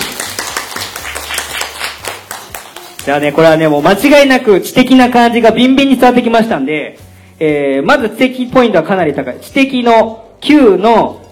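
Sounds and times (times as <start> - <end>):
audience clapping: 0.0 - 3.3
speech: 3.1 - 11.2.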